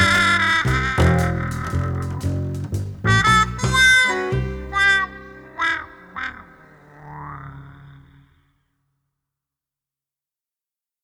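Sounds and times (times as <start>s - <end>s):
trumpet: 0.0s - 6.7s.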